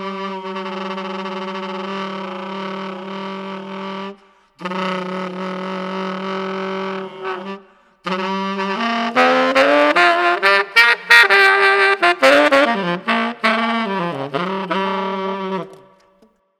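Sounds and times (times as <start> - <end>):
saxophone growling for beginners: 0.0 - 16.0.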